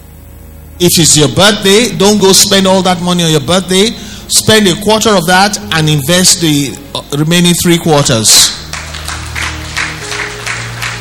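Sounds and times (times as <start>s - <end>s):
low steady hum: 0.0s - 11.0s
speech: 0.8s - 8.6s
people clapping: 8.6s - 11.0s.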